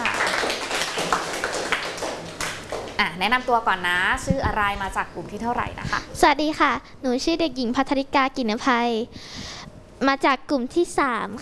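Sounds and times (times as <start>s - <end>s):
classroom clapping for a presenting group: 0.0s - 3.1s
speech: 3.2s - 11.4s.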